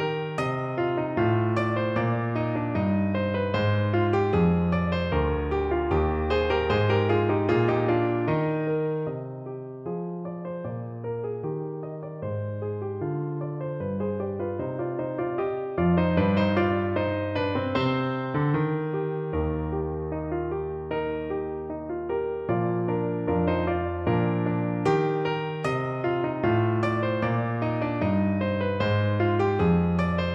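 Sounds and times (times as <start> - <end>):
piano: 0.0 - 30.3.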